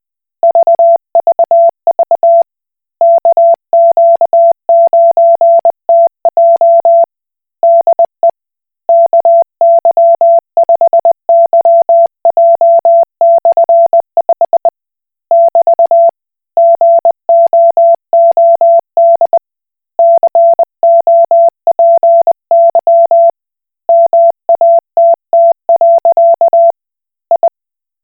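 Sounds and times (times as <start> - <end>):
Koch Morse code beeps: 0.5 - 2.5, 3.0 - 7.1, 8.9 - 14.7, 15.3 - 19.4, 20.0 - 23.3, 23.9 - 26.7, 27.3 - 27.5.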